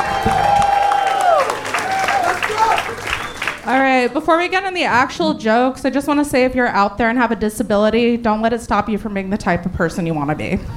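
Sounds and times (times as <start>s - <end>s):
audience applauding a comedian at a comedy show: 0.0s - 4.1s
speech: 3.7s - 10.7s.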